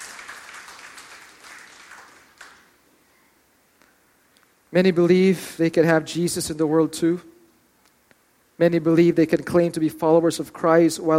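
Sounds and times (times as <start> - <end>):
crowd clapping in praise: 0.0 - 2.8
speech: 4.7 - 7.3, 8.6 - 11.1.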